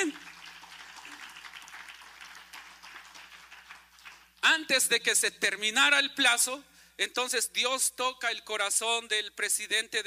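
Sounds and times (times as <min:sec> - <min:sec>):
audience applause: 0:00.0 - 0:04.4
speech: 0:04.6 - 0:10.0.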